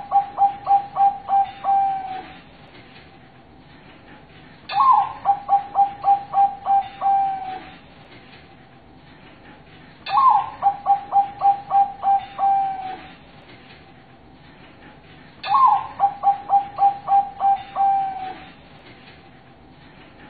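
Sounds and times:
zebra dove cooing master song: 0.0 - 2.4, 4.7 - 7.8, 10.1 - 13.1, 15.4 - 18.5.

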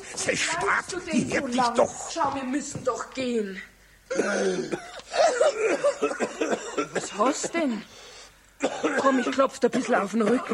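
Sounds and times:
speech: 0.2 - 10.5
coughing from choking on something swallowed: 4.1 - 7.7, 8.6 - 10.5.

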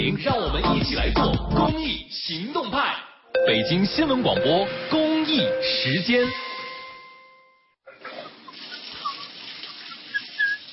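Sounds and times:
speech: 0.1 - 6.5
water running from an open faucet: 8.2 - 10.7.

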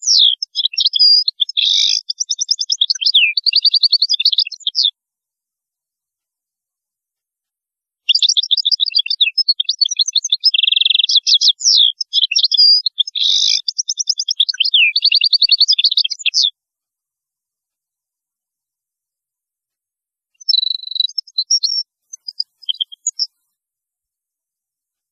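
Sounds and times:
European goldfinch singing: 0.0 - 4.9, 8.1 - 16.5, 20.5 - 23.3.

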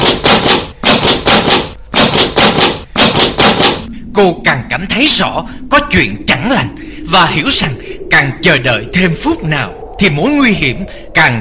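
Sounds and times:
pounding hard on a door: 0.0 - 3.9
speech: 4.2 - 11.3.

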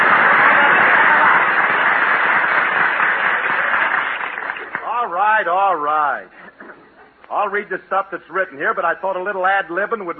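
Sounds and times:
studio audience applause: 0.0 - 5.2
speech: 7.4 - 10.1.

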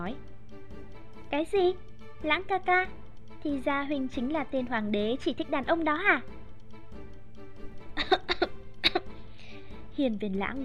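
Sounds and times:
speech: 0.0 - 0.3, 1.3 - 6.4, 10.0 - 10.6
dry coughing: 8.0 - 9.2.

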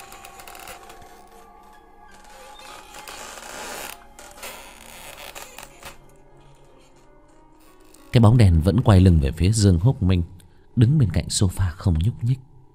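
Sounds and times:
old wooden door to an adjoining room creaking open at night: 0.0 - 8.3
speech: 8.1 - 12.5.

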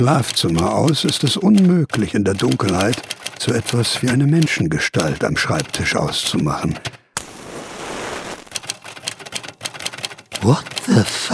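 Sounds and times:
Remington typewriter type bars striking clamped paper: 0.0 - 7.0, 8.5 - 11.3
speech: 0.0 - 7.0, 10.4 - 11.3
steady hiss: 7.2 - 8.6.

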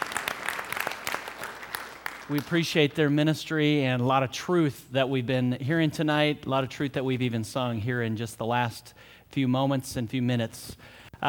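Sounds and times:
audience applause: 0.0 - 2.9
speech: 2.3 - 11.2.

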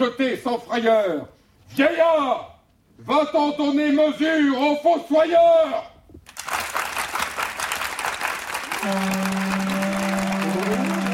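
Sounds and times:
speech: 0.0 - 5.9, 8.8 - 9.3
theatre audience applauding from the stalls: 6.3 - 11.1.

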